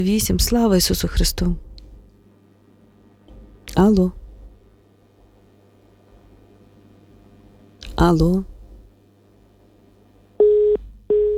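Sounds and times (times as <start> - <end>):
speech: 0.0 - 1.7, 3.8 - 4.2, 8.0 - 8.5
telephone busy tone after a dropped call: 10.4 - 11.3.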